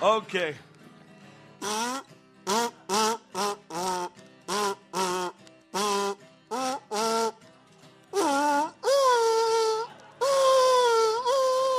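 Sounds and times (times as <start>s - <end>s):
buzzy kazoo mimicking a dog howling: 1.6s - 7.4s, 8.2s - 11.7s.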